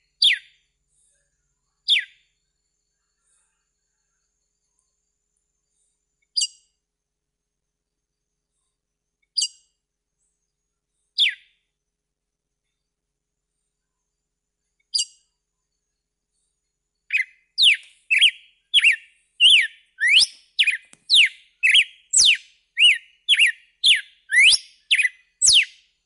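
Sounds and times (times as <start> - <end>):
red-cowled cardinal whistled song: 0.2 - 0.5, 11.2 - 11.5, 17.1 - 25.8.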